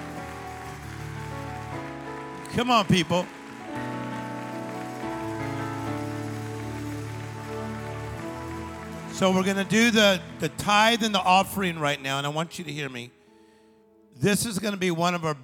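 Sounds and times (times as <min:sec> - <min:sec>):
audience clapping: 0:00.0 - 0:12.0
speech: 0:02.5 - 0:03.8, 0:09.2 - 0:13.2, 0:14.2 - 0:15.4.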